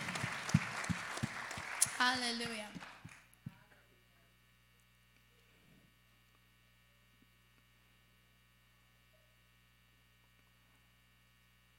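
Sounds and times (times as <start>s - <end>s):
audience applause: 0.0s - 3.3s
speech: 2.0s - 2.8s.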